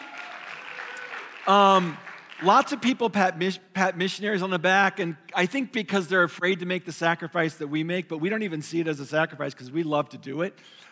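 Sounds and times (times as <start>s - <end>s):
audience clapping: 0.0s - 3.4s
speech: 1.5s - 10.9s.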